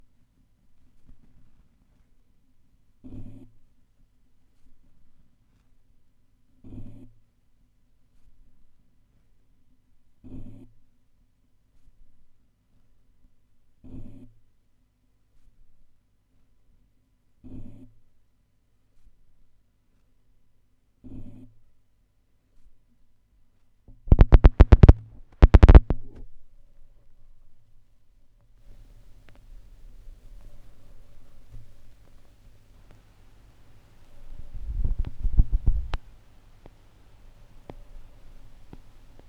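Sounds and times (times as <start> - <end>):
vinyl record noise: 24.1 - 26.0, 28.7 - 39.2.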